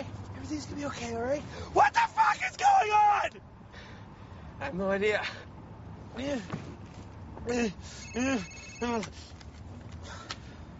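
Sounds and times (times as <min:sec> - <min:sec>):
speech: 0:00.5 - 0:03.5, 0:04.6 - 0:05.5, 0:06.2 - 0:06.8, 0:07.4 - 0:09.4
telephone ringing with electronic warble: 0:08.0 - 0:09.0.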